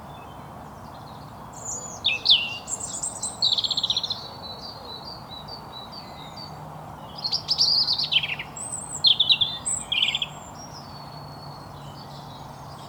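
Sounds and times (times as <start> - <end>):
European robin Erithacus rubecula singing: 1.6 - 4.3, 5.9 - 12.8.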